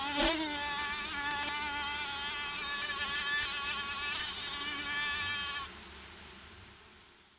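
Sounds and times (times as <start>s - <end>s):
mosquito whine: 0.0s - 5.7s
quiet hiss: 0.0s - 7.3s.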